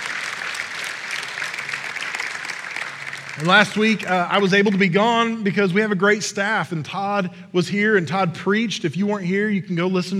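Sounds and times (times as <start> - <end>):
crowd clapping: 0.0 - 5.4
speech: 3.4 - 10.1.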